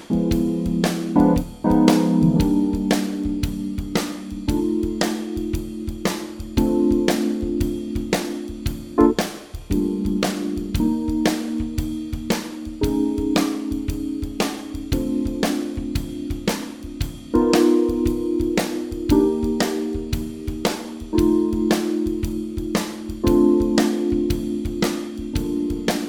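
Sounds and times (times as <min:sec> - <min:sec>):
II V I VI chord progression in Bb without bass: 0:00.0 - 0:26.0.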